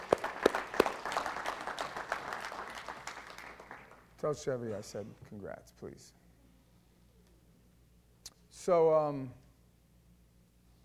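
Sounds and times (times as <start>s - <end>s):
church congregation clapping in praise: 0.0s - 4.2s
speech: 4.2s - 6.2s, 8.7s - 9.4s.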